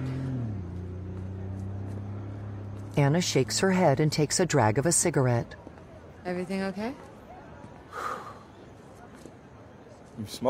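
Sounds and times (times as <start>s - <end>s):
white Porsche engine droning as it speeds away: 0.0s - 5.5s
speech: 3.0s - 5.6s, 6.2s - 7.1s, 10.2s - 10.4s.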